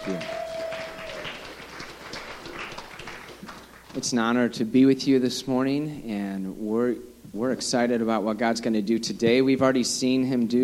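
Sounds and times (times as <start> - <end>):
audience clapping: 0.0 - 4.3
speech: 0.1 - 0.4, 4.0 - 10.6.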